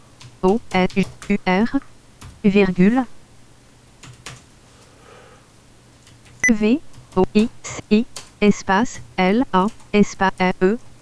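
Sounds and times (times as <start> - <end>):
keystrokes from typing text on a keyboard: 0.2 - 2.4, 6.0 - 10.5
speech: 0.4 - 3.2, 6.5 - 10.9.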